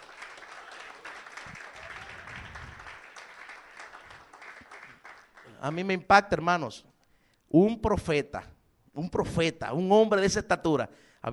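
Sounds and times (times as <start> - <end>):
church congregation applauding at a worship service: 0.0 - 6.1
speech: 5.6 - 6.9, 7.5 - 11.3.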